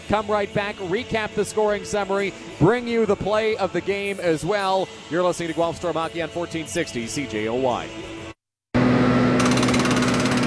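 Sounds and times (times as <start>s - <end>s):
speech: 0.1s - 8.1s
construction jackhammer hammering: 9.4s - 10.4s.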